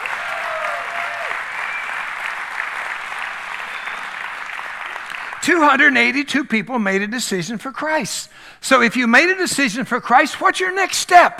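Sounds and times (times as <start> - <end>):
church audience hand clapping: 0.0 - 5.9
whistle-like tone: 1.6 - 2.0, 3.6 - 4.1
speech: 5.4 - 11.3.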